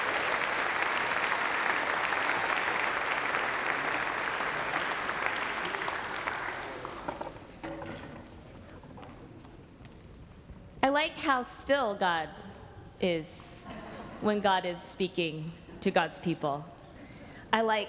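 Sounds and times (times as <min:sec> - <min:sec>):
crowd applauding: 0:00.0 - 0:07.6
speech: 0:11.0 - 0:12.4, 0:13.0 - 0:13.5, 0:14.2 - 0:16.7, 0:17.5 - 0:17.8.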